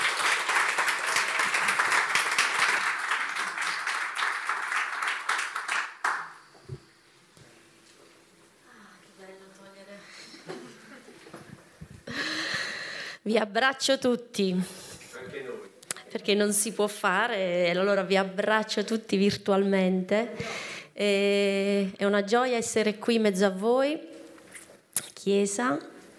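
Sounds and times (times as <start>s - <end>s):
audience applause: 0.0s - 6.4s
speech: 13.3s - 14.8s, 16.2s - 24.1s, 25.2s - 25.9s.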